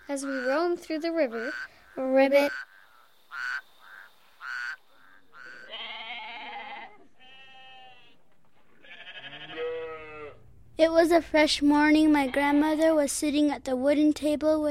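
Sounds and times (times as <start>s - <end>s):
speech: 0.1s - 2.7s, 10.8s - 14.6s
sheep bleating: 4.4s - 8.2s, 8.8s - 10.4s.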